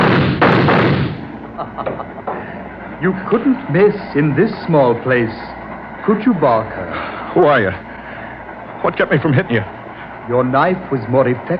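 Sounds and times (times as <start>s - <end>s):
gunshots from a gun: 0.0s - 1.4s
laughter: 1.4s - 3.6s, 8.8s - 10.2s
speech: 1.6s - 2.2s, 3.0s - 7.9s, 8.8s - 11.5s.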